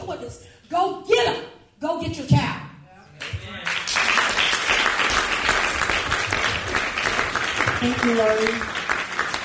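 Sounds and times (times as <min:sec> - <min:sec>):
speech: 0:00.1 - 0:02.5, 0:07.8 - 0:08.8
audience applause: 0:03.6 - 0:09.4.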